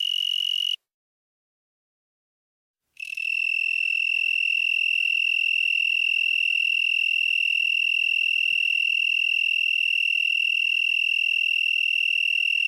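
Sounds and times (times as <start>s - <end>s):
broad-winged tree cricket Oecanthus latipennis trilling: 0.0s - 0.8s, 3.0s - 12.6s.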